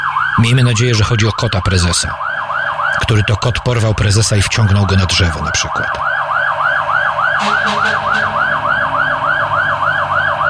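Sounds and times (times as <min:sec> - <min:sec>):
fire engine siren passing in city: 0:00.0 - 0:10.4
speech: 0:00.4 - 0:02.3, 0:03.0 - 0:06.1, 0:07.4 - 0:08.3
low rumble of city traffic: 0:03.8 - 0:10.4
horn-like blasts: 0:07.4 - 0:09.9.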